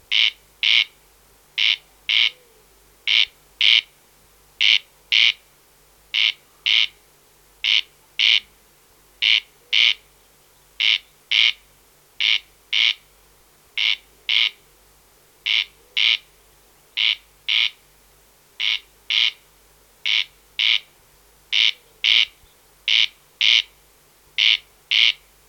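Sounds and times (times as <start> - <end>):
Corn crake Crex crex singing rasping double notes: 0.1 - 1.0, 1.6 - 3.9, 4.6 - 5.4, 6.1 - 7.0, 7.6 - 8.5, 9.2 - 10.1, 10.8 - 13.1, 13.8 - 14.6, 15.4 - 16.3, 17.0 - 17.8, 18.6 - 19.4, 20.0 - 23.8, 24.4 - 25.3.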